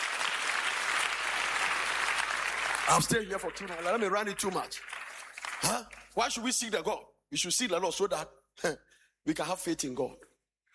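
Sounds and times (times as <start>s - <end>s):
congregation in a church service applauding for the Lord: 0.0s - 6.7s
speech: 2.9s - 4.9s, 5.6s - 10.3s.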